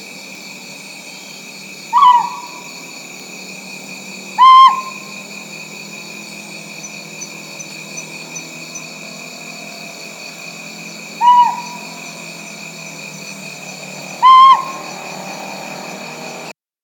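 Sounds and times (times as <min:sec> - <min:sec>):
Rinjani scops owl Otus jolandae hooting: 0:01.9 - 0:03.1, 0:03.8 - 0:15.9.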